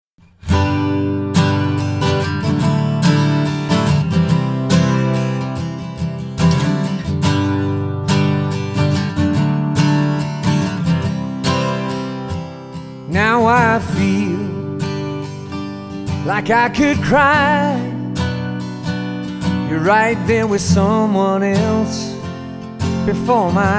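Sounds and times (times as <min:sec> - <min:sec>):
acoustic music: 0:00.2 - 0:23.7.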